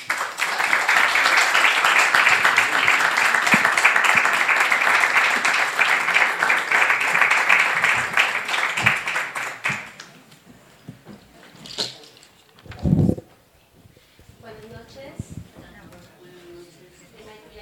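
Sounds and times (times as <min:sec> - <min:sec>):
audience applause: 0:00.0 - 0:10.1.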